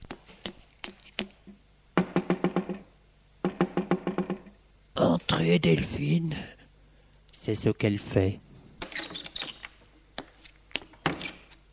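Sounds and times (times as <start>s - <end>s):
knocking on a bedroom door: 2.0s - 2.8s, 3.4s - 4.5s
speech: 5.0s - 6.6s, 7.4s - 8.4s.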